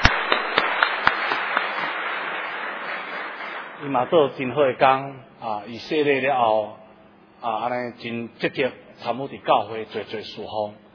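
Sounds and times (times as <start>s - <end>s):
applause: 0.0s - 4.4s
speech: 3.8s - 6.8s, 7.4s - 10.8s.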